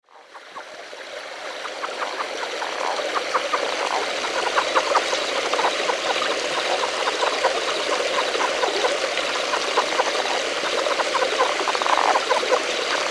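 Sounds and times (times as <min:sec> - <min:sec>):
Relict leopard frog Rana onca calling in clicking pulses: 0:00.1 - 0:13.1.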